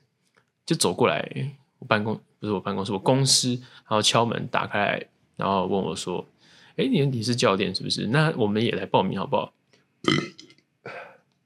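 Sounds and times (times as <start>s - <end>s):
speech: 0.7s - 10.5s
burps: 10.0s - 11.2s.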